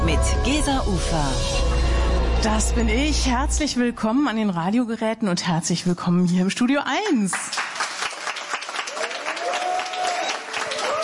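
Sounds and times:
speech: 0.1s - 1.7s, 2.4s - 7.6s
studio audience applause: 7.5s - 11.0s
faint whoops and cheers from studio audience: 8.8s - 11.0s.

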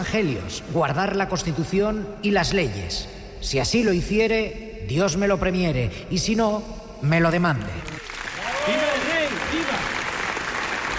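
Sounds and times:
speech: 0.0s - 7.9s
large crowd applauding in a parliament hall: 7.8s - 10.9s
voices cheering: 8.3s - 10.3s.

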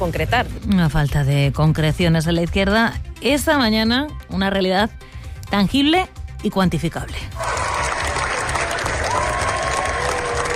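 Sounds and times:
speech: 0.0s - 7.5s
long standing ovation at Cannes film festival: 7.4s - 10.5s.

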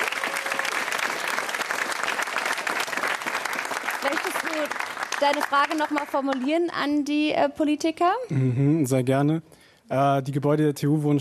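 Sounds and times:
crowd applause: 0.0s - 6.4s
speech: 4.0s - 11.1s.

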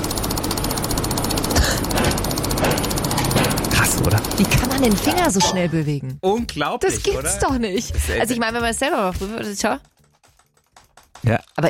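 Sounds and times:
rapid computer mouse clicking: 0.0s - 5.3s, 8.6s - 11.6s
speech: 4.0s - 9.9s, 11.2s - 11.6s.

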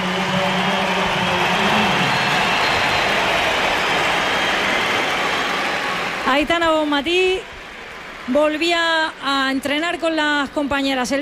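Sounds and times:
stadium crowd cheering and clapping ovation: 0.0s - 11.2s
speech: 6.4s - 7.6s, 8.3s - 11.2s.

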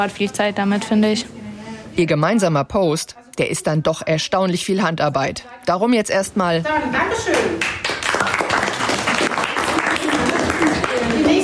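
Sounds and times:
speech: 0.0s - 1.4s, 2.0s - 7.9s
applause: 7.3s - 11.4s.

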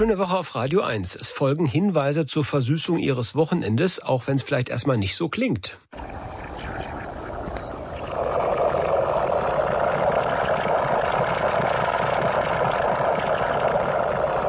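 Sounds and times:
speech: 0.0s - 6.4s
rumbling hiss with crackles from inside a compost heap: 6.0s - 14.4s.

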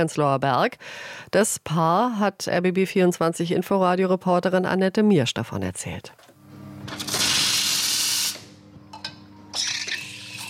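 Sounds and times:
speech: 0.0s - 6.3s
cleaning an espresso coffee machine: 6.8s - 8.5s, 9.5s - 10.4s.

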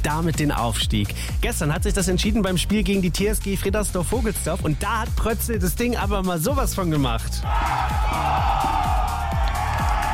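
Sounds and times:
speech: 0.0s - 9.0s
steady low thumping beat: 0.0s - 10.1s
football crowd cheering and whooping after football match: 7.4s - 10.1s.

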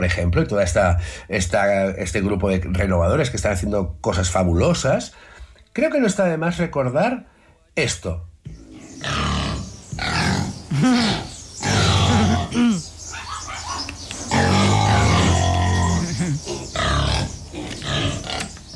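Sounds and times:
speech: 0.0s - 8.3s
pigs grunting and squealing: 8.5s - 18.7s.

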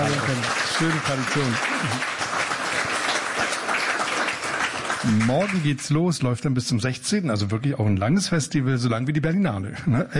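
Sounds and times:
audience applause: 0.0s - 6.1s
speech: 0.1s - 2.2s, 5.0s - 10.1s.

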